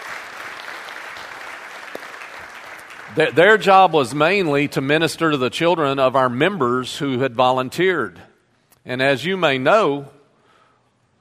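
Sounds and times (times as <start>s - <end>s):
crowd applause: 0.0s - 4.0s
speech: 3.1s - 10.2s.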